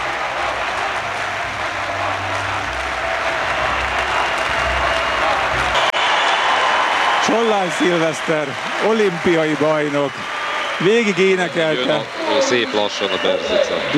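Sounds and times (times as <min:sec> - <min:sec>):
fans chanting Hungarian support at an Olympic victory: 0:00.0 - 0:07.2, 0:10.1 - 0:13.9
crowd clapping at an Olympic victory: 0:00.0 - 0:13.9
speech: 0:07.3 - 0:13.9.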